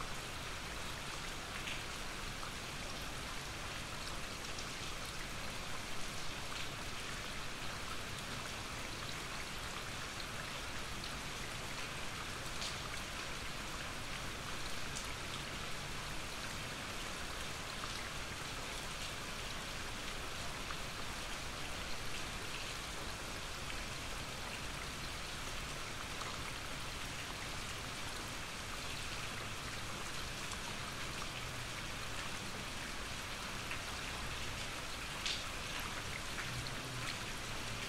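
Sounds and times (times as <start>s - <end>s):
gentle rain: 0.0s - 37.8s.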